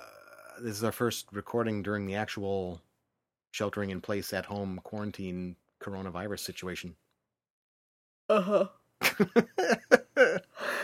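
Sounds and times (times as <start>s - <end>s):
person yawning: 0.0s - 0.6s, 8.3s - 8.8s
speech: 0.6s - 2.9s, 3.6s - 7.0s, 8.3s - 9.9s.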